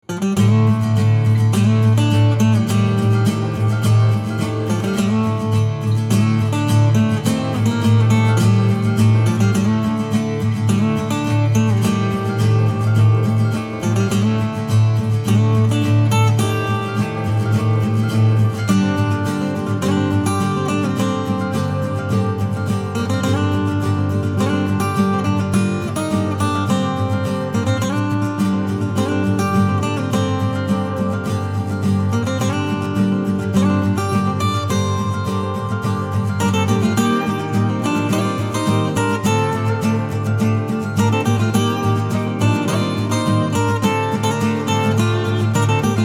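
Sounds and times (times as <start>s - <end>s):
acoustic music: 0.0s - 46.0s.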